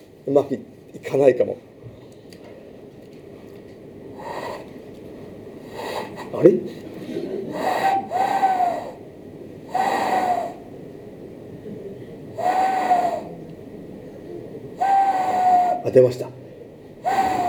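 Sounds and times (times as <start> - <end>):
speech: 0.2 - 1.7, 6.4 - 6.8, 15.9 - 16.4
owl hooting: 4.2 - 4.7, 5.7 - 6.5, 7.5 - 11.1, 12.3 - 17.4.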